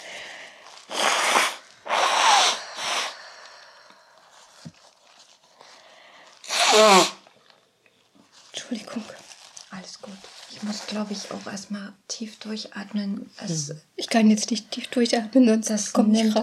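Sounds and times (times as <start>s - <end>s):
person blowing nose: 0.8s - 3.4s, 6.4s - 7.3s
speech: 6.8s - 7.1s, 11.0s - 16.4s.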